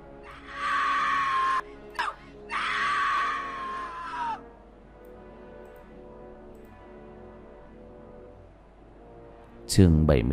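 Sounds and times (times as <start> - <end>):
anguished wailing screams: 0.2 - 4.4
speech: 9.7 - 10.3.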